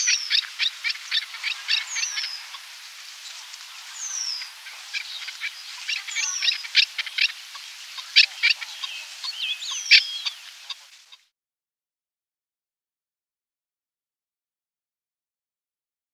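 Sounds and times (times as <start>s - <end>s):
chukar partridge calling with harsh clucking notes: 0.0s - 11.2s.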